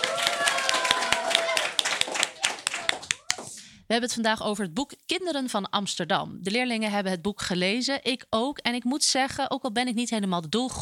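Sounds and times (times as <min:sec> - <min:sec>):
students applauding: 0:00.0 - 0:03.6
speech: 0:03.9 - 0:10.8.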